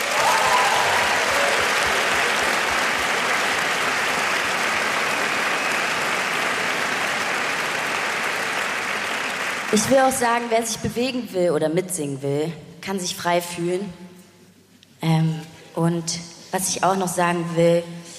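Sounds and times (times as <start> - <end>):
large audience applause in a big concert hall: 0.0 - 10.5
speech: 9.7 - 14.0, 15.8 - 18.0.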